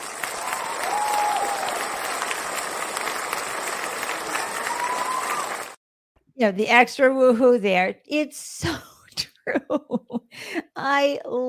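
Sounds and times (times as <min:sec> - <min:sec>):
enthusiastic hand clapping: 0:00.0 - 0:05.8
speech: 0:06.4 - 0:08.9, 0:09.5 - 0:11.4.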